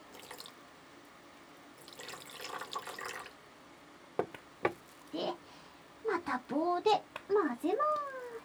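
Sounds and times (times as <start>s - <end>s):
liquid poured into a pot: 0.0s - 0.6s, 1.8s - 3.4s
speech: 6.4s - 8.2s.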